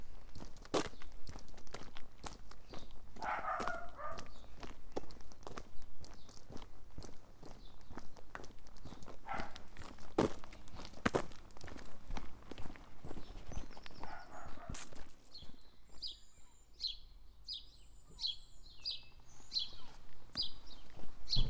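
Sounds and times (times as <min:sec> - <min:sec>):
footsteps crunching on a path from Woodbury Castle to Exmouth: 0:00.0 - 0:16.2, 0:19.3 - 0:21.4
birds chirping: 0:02.6 - 0:09.6, 0:13.0 - 0:21.4.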